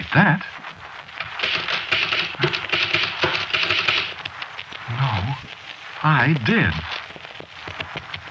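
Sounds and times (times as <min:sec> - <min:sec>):
speech: 0:00.1 - 0:00.7, 0:06.1 - 0:06.9
typewriter typing by itself: 0:01.2 - 0:04.3.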